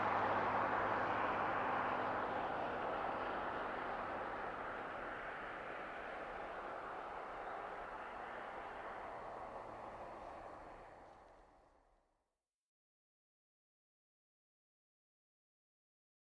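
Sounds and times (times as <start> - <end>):
1998 Mitsubishi Montero starting and driving away, exterior: 0.0 - 11.5.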